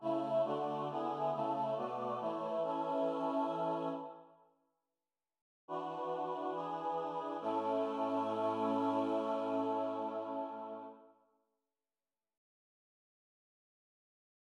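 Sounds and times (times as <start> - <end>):
SATB a cappella choir singing: 0.0 - 4.3, 5.7 - 11.1.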